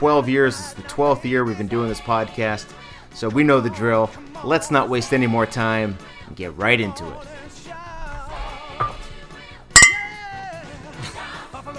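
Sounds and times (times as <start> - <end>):
speech: 0.0 - 7.5
two beer bottles clinking together: 8.8 - 9.2, 9.8 - 10.4.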